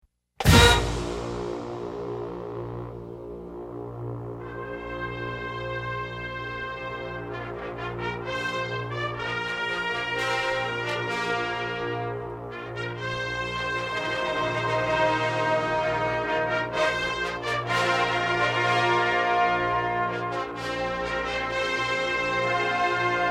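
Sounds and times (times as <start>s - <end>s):
fanfare: 0.4s - 2.4s, 4.4s - 23.2s.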